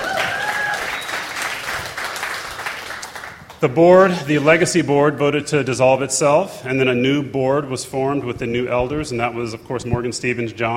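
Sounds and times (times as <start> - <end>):
audience clapping: 0.0 - 3.6
whistles: 0.2 - 1.8
speech: 3.6 - 10.7.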